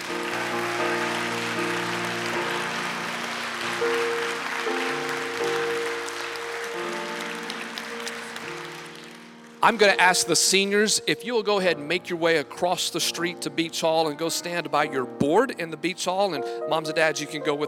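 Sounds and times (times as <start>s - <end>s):
audience applauding: 0.0s - 10.7s
speech: 9.6s - 17.6s.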